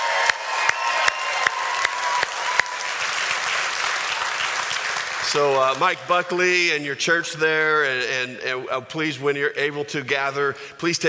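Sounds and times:
church congregation applauding in welcome: 0.0s - 6.8s
speech: 5.3s - 11.0s.

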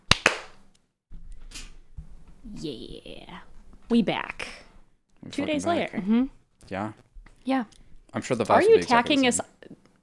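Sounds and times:
hand clap for audio sync: 0.0s - 0.7s
speech: 2.5s - 4.6s, 5.2s - 9.5s.

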